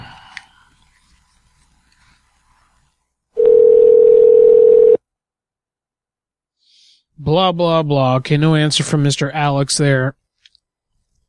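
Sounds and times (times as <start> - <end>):
telephone tone during a call redial: 3.4 - 5.0
speech: 7.3 - 10.2.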